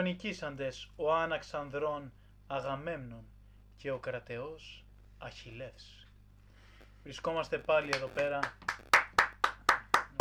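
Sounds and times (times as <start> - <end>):
speech: 0.0 - 6.0, 7.0 - 8.9
hands clapping in a steady rhythm: 7.7 - 10.1.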